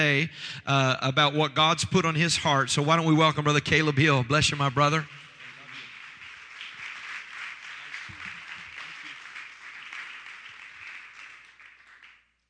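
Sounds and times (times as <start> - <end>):
speech: 0.0 - 5.2
audience applauding and clapping: 3.7 - 12.4.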